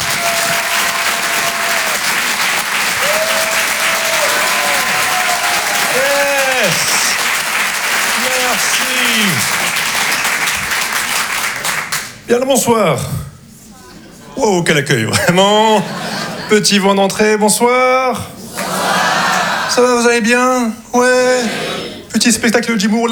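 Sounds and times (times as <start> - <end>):
crowd cheering and whooping: 0.0 - 9.7, 18.5 - 19.8
audience applause: 0.0 - 12.2, 18.5 - 19.9
speech: 12.3 - 13.2, 14.4 - 18.4, 19.8 - 23.1
laughter: 15.1 - 16.9, 18.4 - 19.9.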